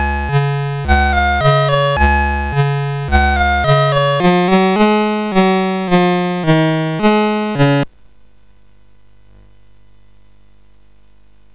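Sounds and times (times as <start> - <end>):
MOS6581R4 SID chip game music: 0.0 - 7.9.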